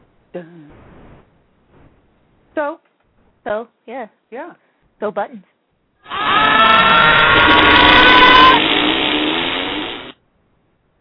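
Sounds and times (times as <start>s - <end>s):
speech: 0.4s - 0.6s, 2.6s - 5.5s
scream effect of souls dragged through mud: 6.0s - 10.2s.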